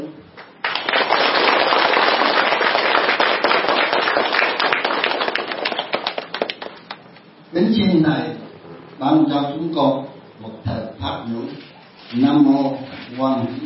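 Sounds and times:
audience applause: 0.6s - 7.0s
speech: 7.6s - 8.4s, 9.0s - 10.1s, 11.3s - 13.6s.

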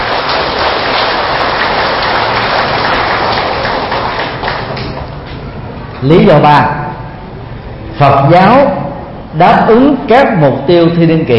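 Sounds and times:
audience applause at a Buddhist talk: 0.0s - 5.2s
speech: 6.0s - 6.8s, 8.0s - 11.3s.

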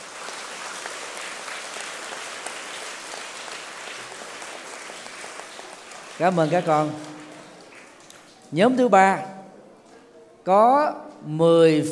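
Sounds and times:
children applauding: 0.0s - 8.5s
speech: 6.2s - 7.1s, 8.5s - 9.3s, 10.4s - 11.9s.

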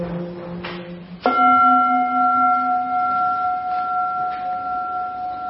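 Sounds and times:
meditation bell ringing: 1.2s - 5.4s.

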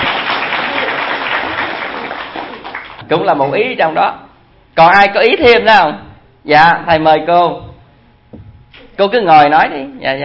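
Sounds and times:
audience applause after a woman shares her view in a group discussion: 0.0s - 3.0s
speech: 3.1s - 4.2s, 4.8s - 7.7s, 9.0s - 10.2s.

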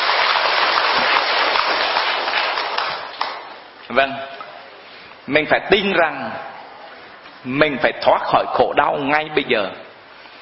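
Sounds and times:
applause: 0.0s - 3.5s
speech: 4.0s - 4.4s, 5.3s - 6.5s, 7.4s - 9.8s.

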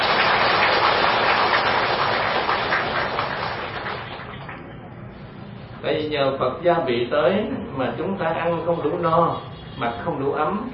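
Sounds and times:
audience applause: 0.0s - 4.7s
speech: 5.9s - 10.7s.

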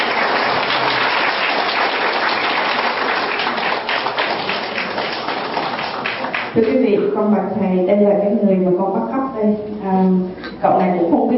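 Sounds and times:
audience applause for a guitarist: 0.0s - 6.6s
speech: 6.6s - 11.3s.

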